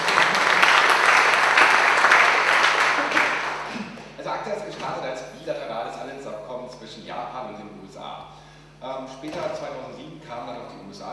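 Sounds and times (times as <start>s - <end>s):
audience applause: 0.0s - 3.8s
speech: 8.8s - 11.1s.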